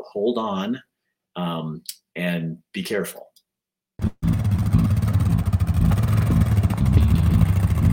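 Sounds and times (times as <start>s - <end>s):
speech: 0.0s - 3.4s
vehicle engine driving onto a frozen lake for ice fishing: 4.0s - 7.9s.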